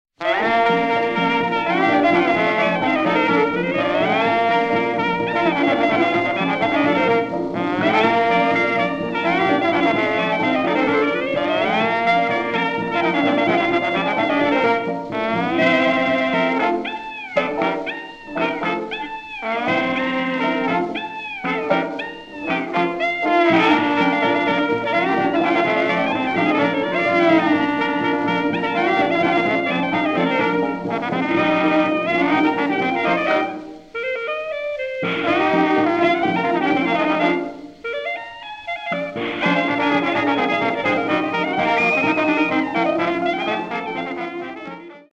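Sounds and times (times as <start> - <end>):
Dixieland jazz band playing: 0.2 - 45.1.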